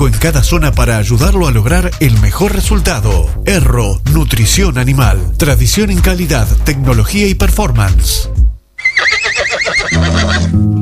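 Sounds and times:
speech: 0.1s - 8.4s, 9.9s - 10.7s
horse neighing: 8.8s - 10.6s.

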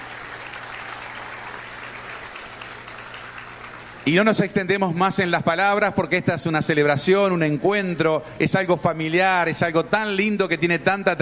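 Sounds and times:
audience applause: 0.0s - 4.2s
speech: 4.0s - 11.1s.

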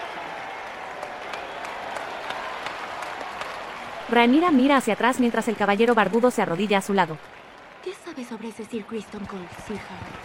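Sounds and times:
applause: 0.0s - 10.2s
speech: 4.1s - 10.2s.

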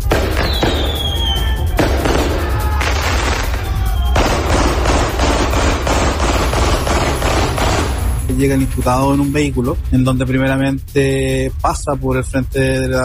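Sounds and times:
gunshots at a wake: 0.0s - 1.2s, 1.8s - 8.4s
firework whistling: 0.0s - 4.8s
fireworks crackling and booming at a wake: 0.0s - 8.4s
speech: 8.4s - 13.0s.

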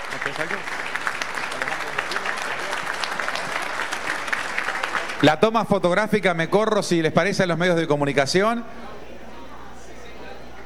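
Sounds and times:
audience applause: 0.0s - 5.2s
speech: 0.1s - 0.9s, 5.2s - 9.0s.

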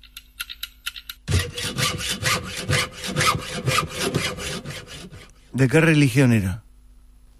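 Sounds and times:
handsaw sawing wood: 1.3s - 5.3s
speech: 5.6s - 6.6s.

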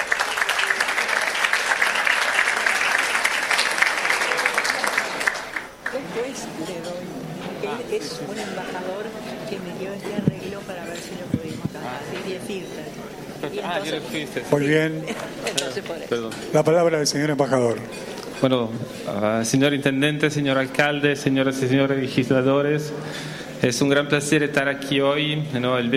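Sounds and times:
audience applause: 0.0s - 6.2s
speech: 7.8s - 25.9s.

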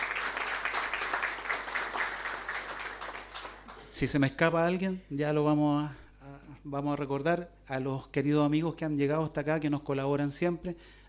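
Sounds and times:
audience applause: 0.0s - 3.9s
speech: 4.0s - 11.0s.

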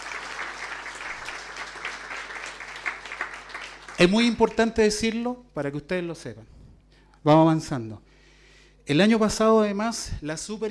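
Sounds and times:
crowd applauding: 0.0s - 4.9s
speech: 4.0s - 6.6s, 7.2s - 8.1s, 8.8s - 10.6s.

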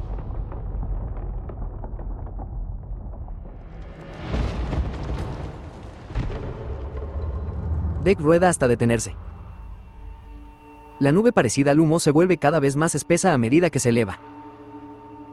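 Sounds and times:
crackling explosion of a creature bursting apart: 0.0s - 9.7s
deep continuous rumbling roar: 0.0s - 10.7s
speech: 8.0s - 9.3s, 11.0s - 14.3s.

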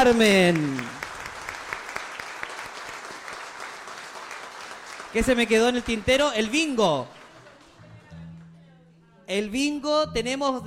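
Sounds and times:
speech: 0.0s - 0.9s, 5.2s - 7.2s, 9.3s - 10.6s
audience applause: 0.0s - 7.9s.

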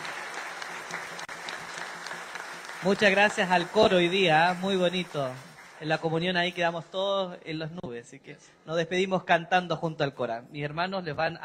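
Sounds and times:
audience applause: 0.0s - 6.1s
speech: 2.8s - 11.4s.

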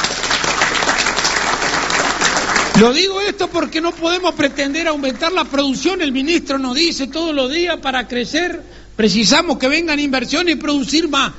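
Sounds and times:
group clapping for officials: 0.0s - 5.6s
speech: 2.8s - 11.3s.

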